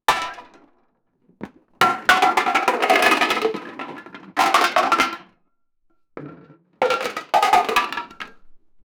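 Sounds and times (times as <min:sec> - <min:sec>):
plastic blocks falling: 0:01.4 - 0:05.3, 0:06.2 - 0:08.8.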